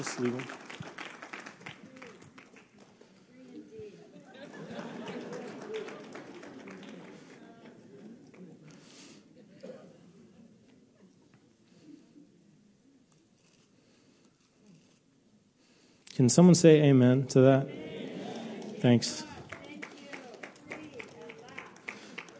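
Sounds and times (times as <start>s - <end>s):
speech: 0.0s - 0.6s, 16.2s - 17.8s, 18.8s - 19.3s
audience clapping: 0.0s - 3.3s, 4.3s - 9.1s, 18.1s - 22.3s
laughter: 3.6s - 10.6s, 17.6s - 22.3s.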